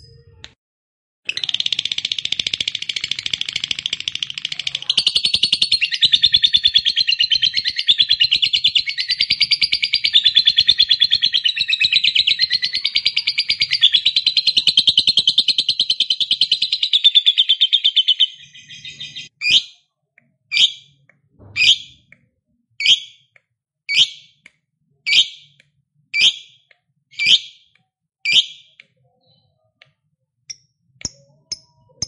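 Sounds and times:
lovebird chattering song: 0:01.3 - 0:19.8, 0:23.9 - 0:24.4, 0:25.1 - 0:25.6, 0:26.2 - 0:27.7, 0:28.3 - 0:29.4.

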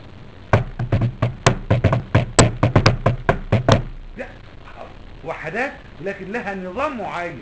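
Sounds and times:
hand tapping a drum rhythm: 0:00.6 - 0:03.9
speech: 0:05.4 - 0:07.3.

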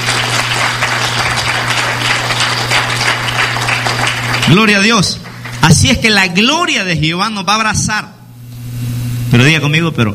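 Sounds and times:
audience applauding: 0:00.0 - 0:06.0
speech: 0:04.5 - 0:08.2, 0:09.3 - 0:10.1.

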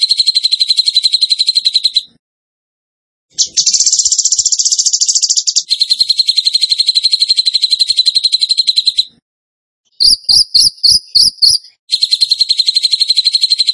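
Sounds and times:
bird song: 0:00.0 - 0:02.2, 0:03.3 - 0:09.2, 0:09.9 - 0:13.7.

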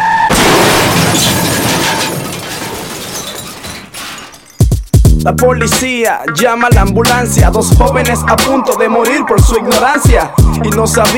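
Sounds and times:
car crashing into a wall: 0:00.3 - 0:04.7
crunching metal and shattering glass: 0:00.3 - 0:05.1
speech: 0:05.2 - 0:11.1.

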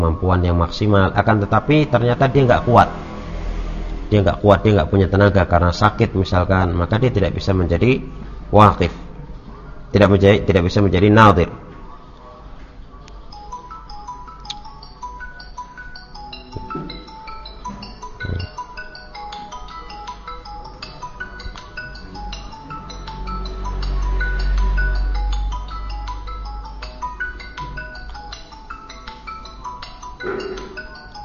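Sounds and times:
speech: 0:00.0 - 0:03.0, 0:04.1 - 0:09.0, 0:09.9 - 0:11.6
mobile phone ringtone with electronic melody: 0:13.2 - 0:31.2.

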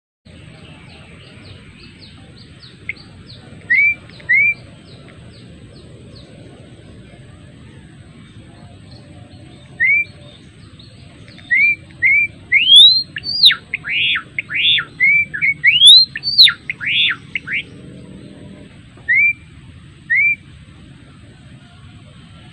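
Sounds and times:
adult male Java sparrow singing whistled notes: 0:00.6 - 0:06.3, 0:08.4 - 0:18.3, 0:19.0 - 0:20.4.

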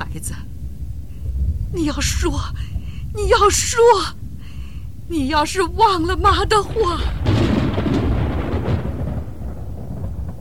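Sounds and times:
speech: 0:00.2 - 0:00.6, 0:01.7 - 0:04.2, 0:05.1 - 0:07.3
violent thunderclap: 0:01.2 - 0:04.4, 0:05.4 - 0:10.3.

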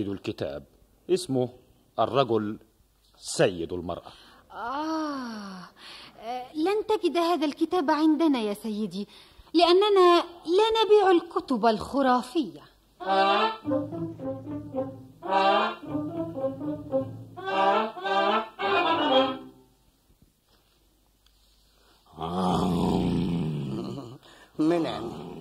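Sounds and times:
speech: 0:00.0 - 0:19.3, 0:22.2 - 0:23.0, 0:24.6 - 0:25.2
circus lion roaring: 0:22.1 - 0:24.1.

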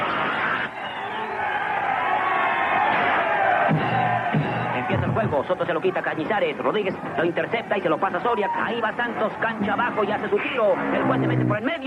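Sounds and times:
shouts and whoops: 0:00.0 - 0:05.0
crowd roaring and cheering at an ice hockey game after a goalie save: 0:00.0 - 0:11.8
speech: 0:05.2 - 0:11.8.

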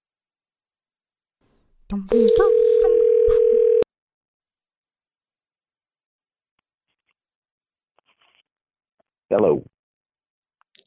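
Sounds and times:
speech: 0:01.9 - 0:03.7, 0:09.3 - 0:09.7
telephone dial tone while calling a cell phone: 0:02.3 - 0:03.9.

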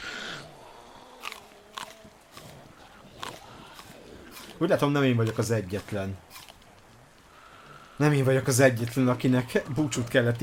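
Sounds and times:
person biting into and chewing a plum: 0:00.1 - 0:07.7
speech: 0:04.6 - 0:06.4, 0:08.0 - 0:10.4.

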